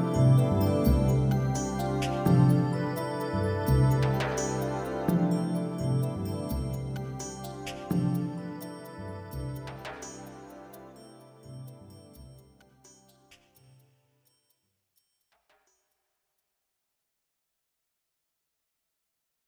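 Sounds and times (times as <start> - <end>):
glockenspiel: 0.0 - 12.6.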